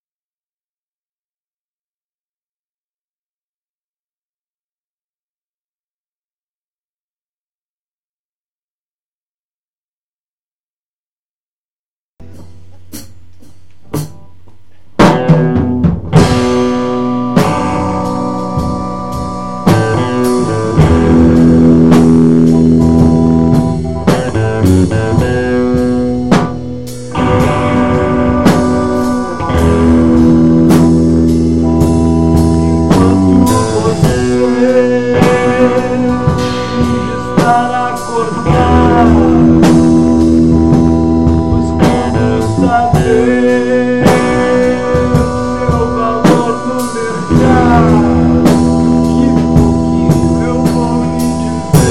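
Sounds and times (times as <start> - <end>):
chords: 12.2 - 51.8.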